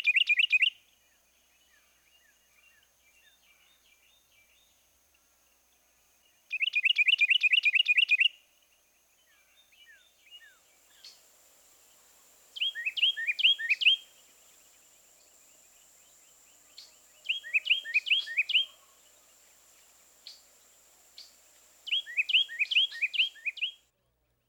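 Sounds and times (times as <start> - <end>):
Carolina wren song: 0.0 - 23.9.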